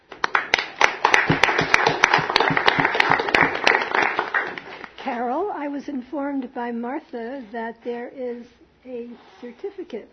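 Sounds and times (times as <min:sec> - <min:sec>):
audience applause: 0:00.2 - 0:05.0
speech: 0:05.7 - 0:10.1.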